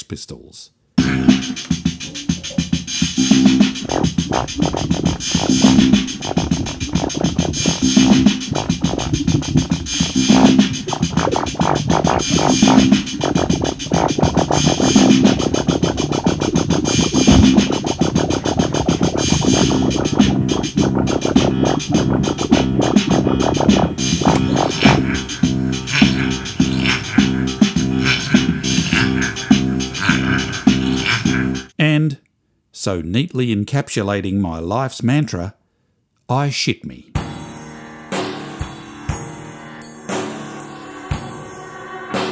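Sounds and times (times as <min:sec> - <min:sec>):
speech: 0:00.1 - 0:02.2, 0:03.8 - 0:09.6, 0:32.8 - 0:35.6, 0:36.3 - 0:37.1
repeating bass notes: 0:01.0 - 0:31.7
steady beat: 0:01.0 - 0:31.7
turntable scratching of a raspberry sound: 0:01.0 - 0:31.7.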